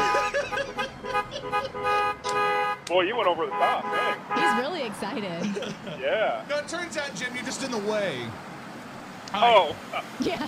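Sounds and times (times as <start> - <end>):
laughter: 0.0 - 2.0, 5.2 - 6.3, 10.2 - 10.4
car horn honks: 0.0 - 5.0
speech: 2.9 - 8.5, 9.3 - 10.4.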